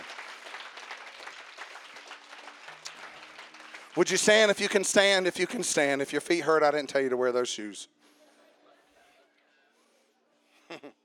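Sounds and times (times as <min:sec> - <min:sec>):
audience clapping hands: 0:00.0 - 0:06.0
speech: 0:04.0 - 0:08.0.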